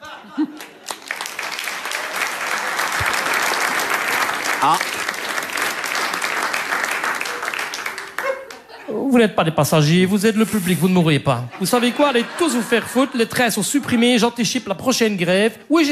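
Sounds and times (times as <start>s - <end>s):
laughter: 0.0s - 1.2s, 7.2s - 9.1s, 11.5s - 14.2s
audience applause: 0.4s - 8.7s
speech: 4.6s - 5.0s, 9.2s - 15.9s.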